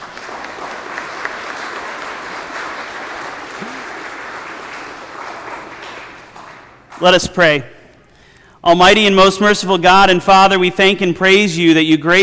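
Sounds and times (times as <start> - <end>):
audience applause: 0.0 - 7.0
speech: 7.0 - 7.7, 8.6 - 12.2.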